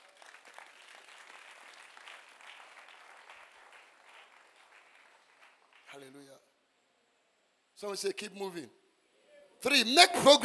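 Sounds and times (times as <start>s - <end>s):
audience clapping: 0.0s - 6.2s
speech: 6.0s - 6.4s, 7.8s - 8.8s, 9.6s - 10.4s.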